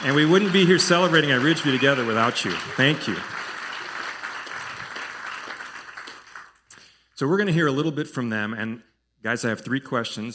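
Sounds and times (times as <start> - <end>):
speech: 0.0 - 3.4, 7.2 - 10.3
audience applause: 0.0 - 6.6.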